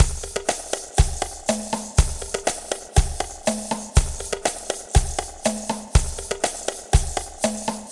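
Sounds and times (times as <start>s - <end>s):
cha cha cha lounge drum beat at 121 BPM: 0.0s - 7.9s.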